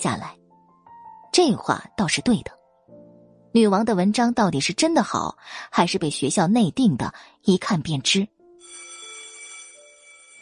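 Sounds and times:
speech: 0.0 - 0.4, 1.4 - 2.6, 3.6 - 8.4
school class bell ringing: 8.6 - 10.4.

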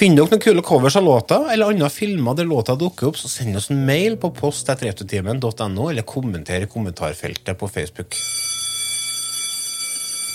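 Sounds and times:
speech: 0.0 - 8.6
school bell ringing: 8.2 - 10.3.

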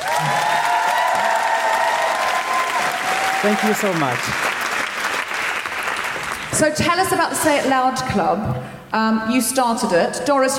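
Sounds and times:
live audience cheering at an Amnesty International UK event: 0.0 - 6.0
live audience clapping to welcome guests at an Amnesty International UK event: 0.0 - 6.8
speech: 3.4 - 4.5, 6.5 - 10.5.

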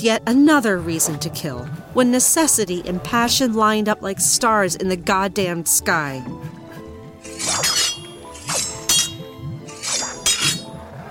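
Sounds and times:
speech: 0.0 - 6.6, 7.4 - 7.8
blade striking an unbreakable window: 7.3 - 10.6.

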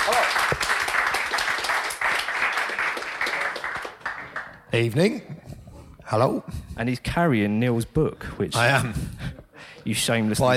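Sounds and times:
round of applause: 0.0 - 4.7
speech: 4.7 - 5.4, 6.1 - 9.2, 9.8 - 10.5.

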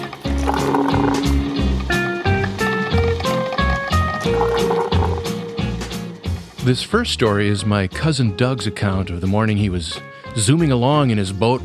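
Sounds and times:
coffee being poured into a cup: 0.0 - 1.8, 2.4 - 5.4
speech: 6.7 - 11.6.

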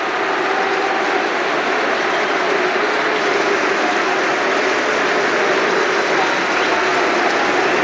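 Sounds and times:
stadium crowd booing: 0.0 - 7.8.

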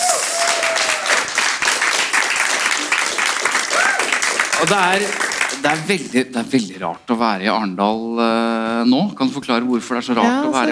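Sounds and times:
audience applause: 0.0 - 6.1
speech: 4.6 - 10.7.

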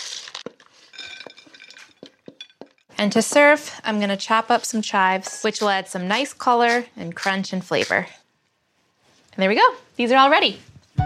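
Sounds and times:
food rustling as it is mixed: 0.0 - 8.3
utensil clinking against bowl: 0.9 - 3.4
speech: 3.0 - 8.2, 9.4 - 10.7.

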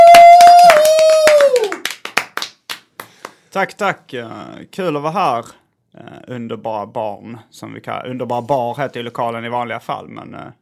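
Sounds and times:
audience applause: 0.0 - 3.4
speech: 3.6 - 10.6.

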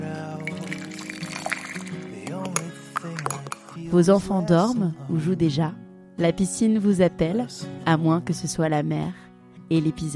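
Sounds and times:
coffee flowing: 0.0 - 3.8
speech: 3.9 - 10.1.

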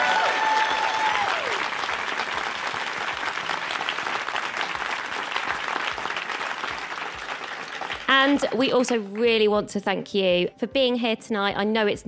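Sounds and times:
audience applause: 0.0 - 9.2
speech: 8.3 - 12.0.

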